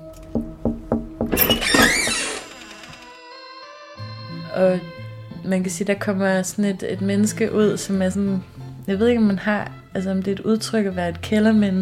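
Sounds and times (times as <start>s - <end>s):
knocking on a door: 0.3s - 3.0s
speech: 4.6s - 4.9s, 5.5s - 11.8s.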